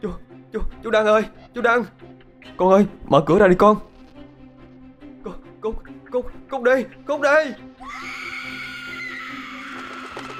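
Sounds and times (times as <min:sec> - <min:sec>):
speech: 0:00.0 - 0:02.0, 0:02.6 - 0:03.9, 0:06.6 - 0:07.7
terrifying shrill scream: 0:07.8 - 0:10.3.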